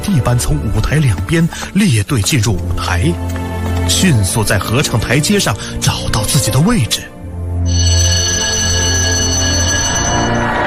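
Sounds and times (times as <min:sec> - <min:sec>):
speech: 0:00.1 - 0:07.9
theatre bell ringing: 0:07.7 - 0:10.6.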